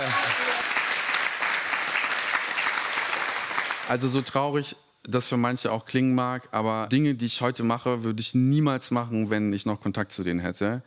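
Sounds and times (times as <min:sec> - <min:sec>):
applause: 0:00.0 - 0:04.3
speech: 0:03.9 - 0:10.8.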